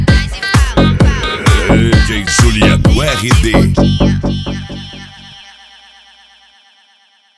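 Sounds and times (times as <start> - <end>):
mega funk music: 0.1 - 4.2.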